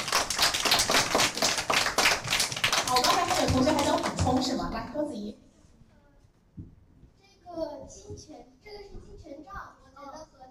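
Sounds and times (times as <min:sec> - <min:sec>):
classroom of students clapping in quick regular bursts: 0:00.0 - 0:04.7
speech: 0:03.6 - 0:05.5, 0:07.5 - 0:10.2.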